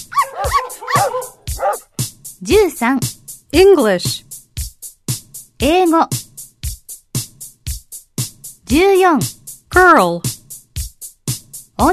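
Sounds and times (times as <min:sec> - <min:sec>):
dog barking and yipping: 0:00.0 - 0:01.9
speech: 0:02.4 - 0:04.3, 0:05.6 - 0:06.3, 0:08.7 - 0:10.4.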